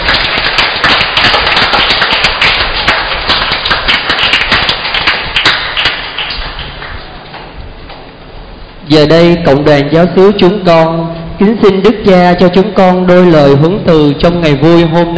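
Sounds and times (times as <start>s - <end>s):
large crowd clapping: 0.0s - 7.6s
speech: 8.9s - 15.1s.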